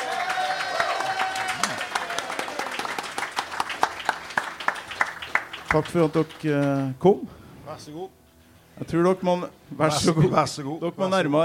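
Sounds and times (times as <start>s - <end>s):
audience applause: 0.0s - 6.6s
speech: 5.7s - 8.2s, 8.8s - 11.4s.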